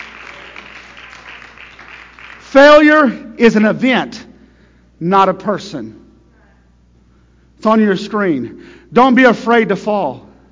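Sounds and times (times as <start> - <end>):
church congregation clapping hands: 0.0 - 3.9
speech: 2.5 - 4.2, 5.0 - 6.0, 7.6 - 10.3.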